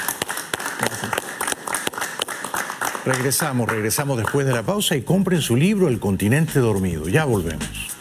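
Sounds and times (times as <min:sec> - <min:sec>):
crowd applauding: 0:00.0 - 0:05.2
speech: 0:03.0 - 0:07.9.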